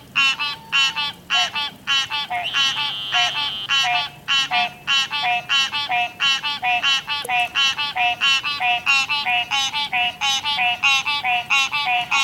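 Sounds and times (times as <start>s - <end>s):
frog croaking: 0.2s - 12.2s.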